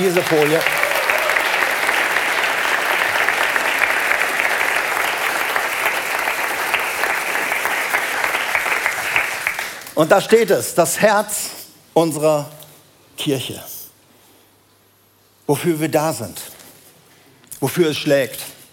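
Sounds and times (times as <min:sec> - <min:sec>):
speech: 0:00.0 - 0:00.8, 0:10.0 - 0:12.6, 0:13.2 - 0:13.7, 0:15.5 - 0:16.5, 0:17.6 - 0:18.5
audience applause: 0:00.0 - 0:09.9.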